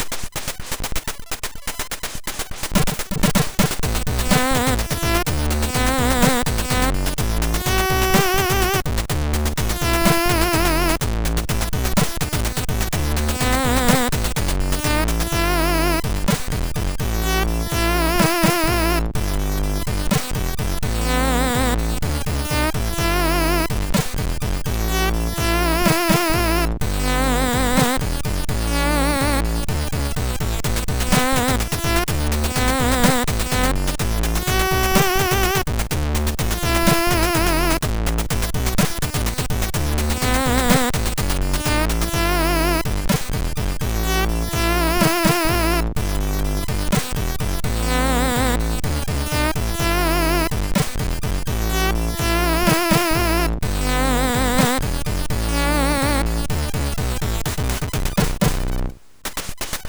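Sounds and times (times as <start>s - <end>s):
jazz on MOS6581R2 SID chip: 0.0s - 59.8s.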